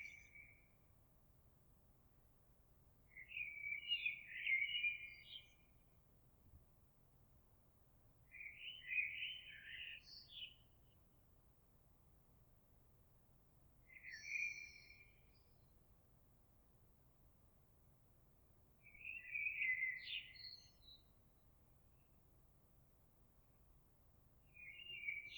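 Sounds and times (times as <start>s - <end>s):
blackbird: 0.0s - 0.6s, 3.1s - 5.6s, 8.3s - 10.6s, 13.8s - 15.6s, 18.8s - 21.1s, 24.5s - 25.3s.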